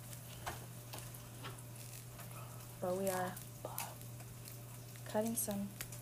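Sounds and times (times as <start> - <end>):
Spam frying in a pan: 0.0 - 6.0
speech: 2.8 - 3.9, 5.1 - 5.9.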